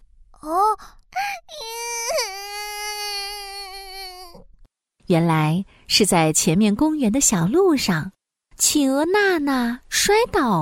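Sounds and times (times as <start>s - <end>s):
crying sobbing sound effect: 1.3s - 4.4s
speech: 5.1s - 10.6s.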